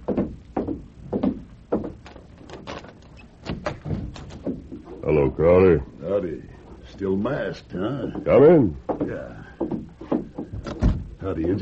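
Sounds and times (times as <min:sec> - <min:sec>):
wooden thumps and clunks of a door being opened: 0:00.1 - 0:02.7, 0:03.4 - 0:04.8, 0:08.1 - 0:11.6
speech: 0:05.1 - 0:09.8, 0:11.2 - 0:11.6.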